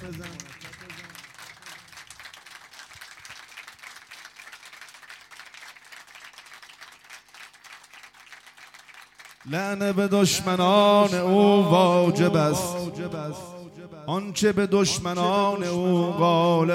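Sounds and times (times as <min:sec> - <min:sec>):
speech: 0:00.0 - 0:00.7, 0:09.5 - 0:13.5, 0:14.1 - 0:16.7
audience clapping rhythmically at a devotional gathering honoring Ali ibn Abi Talib: 0:00.0 - 0:10.0.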